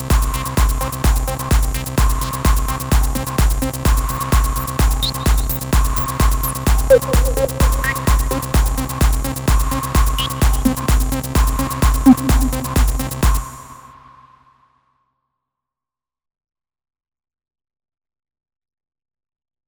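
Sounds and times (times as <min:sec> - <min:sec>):
EDM for kids: 0:00.2 - 0:13.6.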